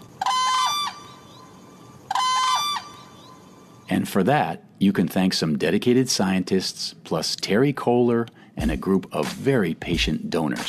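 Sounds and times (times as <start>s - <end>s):
large lanky-necked wild bird calling at dusk: 0.0s - 3.8s
speech: 4.0s - 10.6s.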